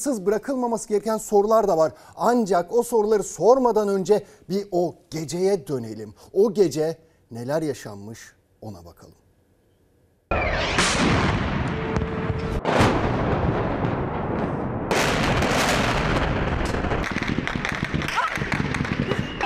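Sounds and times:
speech: 0.0s - 9.2s, 10.3s - 11.2s
gunfire opened on a crowd: 10.3s - 19.4s.

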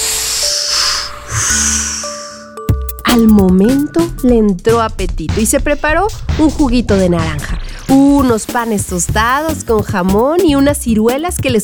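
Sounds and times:
forceful inhale through the nose from an uncorked bottle: 0.0s - 2.6s
speech: 3.2s - 11.6s.

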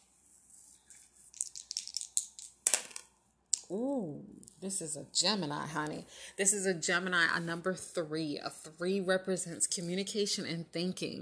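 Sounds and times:
dice being rolled: 1.3s - 3.1s
speech: 3.7s - 11.2s.

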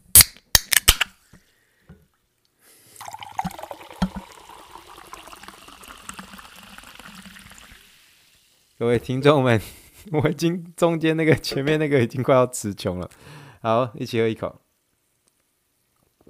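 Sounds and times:
sparkling water fizzing: 3.0s - 9.5s
speech: 8.8s - 14.6s.

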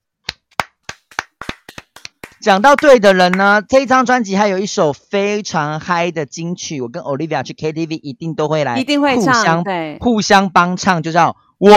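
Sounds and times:
hand clapping: 0.2s - 3.6s
speech: 2.4s - 11.7s.

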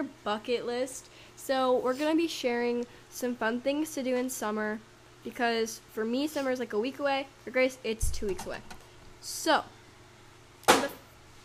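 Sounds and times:
speech: 0.0s - 9.8s
dart hitting a dartboard: 10.7s - 11.0s.

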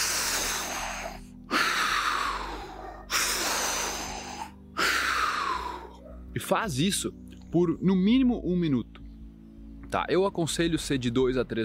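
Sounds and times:
forced deep breathing: 0.0s - 6.0s
speech: 6.4s - 9.0s, 9.9s - 11.6s.

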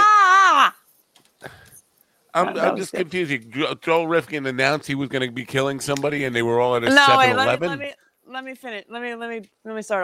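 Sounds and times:
person screaming outside: 0.0s - 0.7s
speech: 2.4s - 10.0s.

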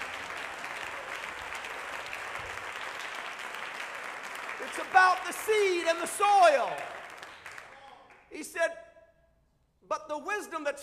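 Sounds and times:
audience clapping: 0.0s - 8.3s
speech: 4.8s - 7.0s, 8.3s - 8.8s, 9.9s - 10.8s.

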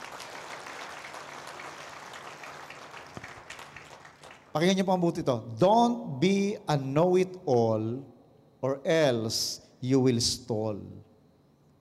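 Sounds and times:
audience clapping loudly: 0.0s - 4.6s
speech: 4.5s - 11.1s.

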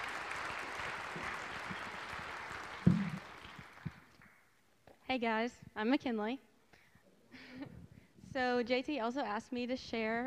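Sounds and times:
audience applause: 0.0s - 4.3s
speech: 5.1s - 6.5s, 8.4s - 10.2s.

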